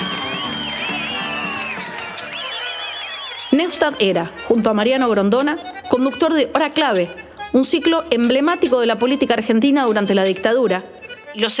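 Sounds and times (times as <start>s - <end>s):
crowd booing: 0.0s - 3.9s
speech: 3.6s - 11.5s.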